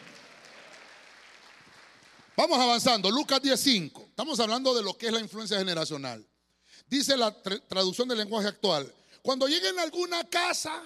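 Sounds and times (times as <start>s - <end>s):
hands clapping: 0.0s - 2.8s
speech: 2.4s - 10.8s.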